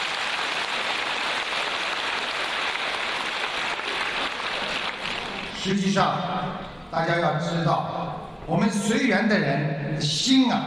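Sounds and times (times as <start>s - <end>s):
audience applause: 0.0s - 5.6s
speech: 5.6s - 10.6s.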